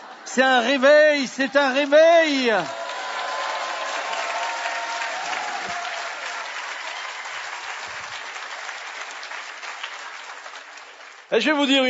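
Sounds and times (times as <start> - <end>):
speech: 0.3 - 2.8, 11.3 - 11.8
small audience applauding: 0.8 - 11.8.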